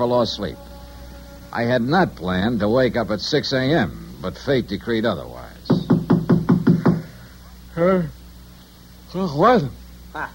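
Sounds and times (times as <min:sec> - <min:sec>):
speech: 0:00.0 - 0:00.7, 0:01.5 - 0:05.6, 0:07.8 - 0:08.2, 0:09.1 - 0:10.3
knocking on a hotel room door: 0:05.7 - 0:07.2.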